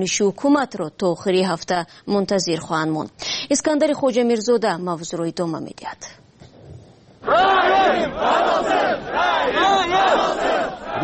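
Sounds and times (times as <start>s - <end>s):
speech: 0.0s - 6.2s, 7.2s - 11.0s
protest crowd shouting in rhythmic chants: 7.2s - 11.0s.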